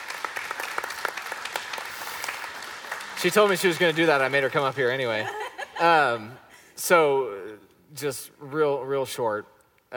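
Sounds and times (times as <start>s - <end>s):
audience applause: 0.0s - 5.2s
speech: 3.2s - 9.9s.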